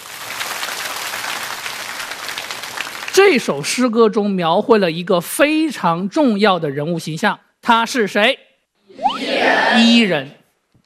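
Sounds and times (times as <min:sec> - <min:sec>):
classroom applause: 0:00.0 - 0:03.3
speech: 0:03.2 - 0:10.4.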